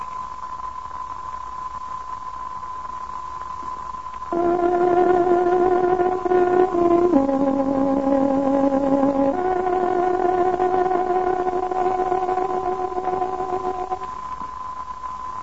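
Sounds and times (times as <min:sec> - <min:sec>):
tárogató playing radio time signal: 0:04.4 - 0:14.1.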